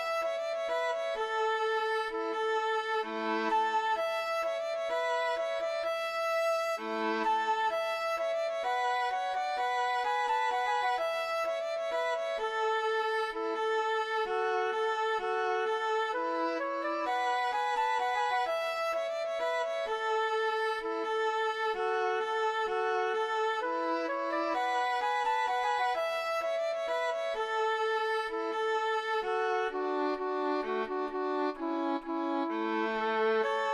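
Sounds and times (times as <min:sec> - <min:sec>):
flute: 0:00.0 - 0:33.7
violin: 0:00.0 - 0:33.7.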